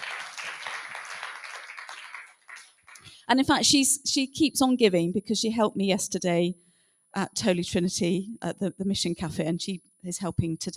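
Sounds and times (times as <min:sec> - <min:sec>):
crowd applauding: 0:00.0 - 0:03.1
speech: 0:03.3 - 0:10.7.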